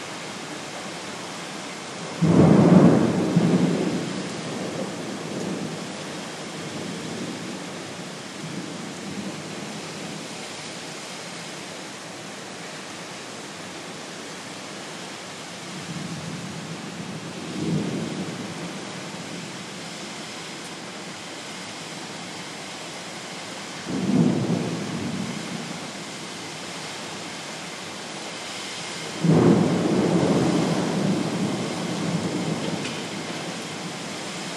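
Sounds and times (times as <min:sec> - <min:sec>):
thunderstorm in Bangkok: 0:02.1 - 0:10.2, 0:15.7 - 0:19.8, 0:23.9 - 0:26.0, 0:29.0 - 0:34.5.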